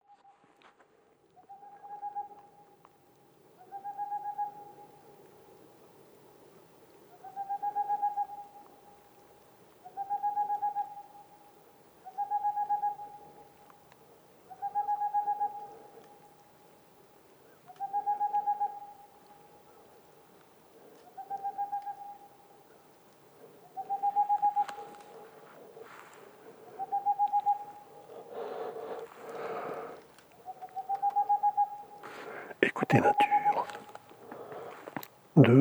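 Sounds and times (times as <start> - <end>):
boreal owl singing: 3.6 - 5.0, 7.1 - 8.7, 9.8 - 11.3, 12.0 - 13.4, 14.5 - 16.1, 17.7 - 19.1, 21.0 - 22.4, 23.4 - 32.5
speech: 32.9 - 33.3, 35.4 - 35.5.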